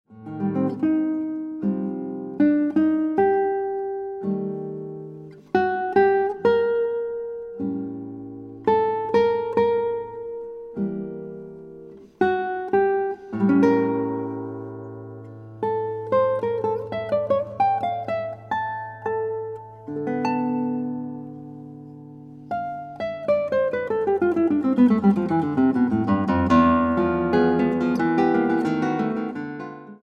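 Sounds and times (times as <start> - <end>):
guitar: 0.1 - 30.0.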